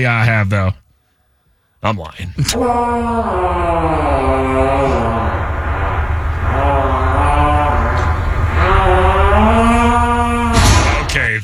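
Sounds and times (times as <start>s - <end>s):
speech: 0.0s - 0.8s, 1.8s - 5.4s
fart echoing in a stairwell: 2.5s - 11.4s.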